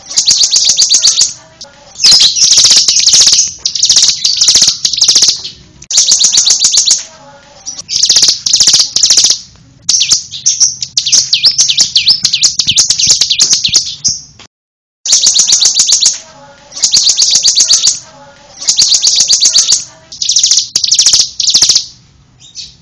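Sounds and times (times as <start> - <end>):
bird giving rapid high chattering notes: 0.0 - 14.3, 15.1 - 22.8.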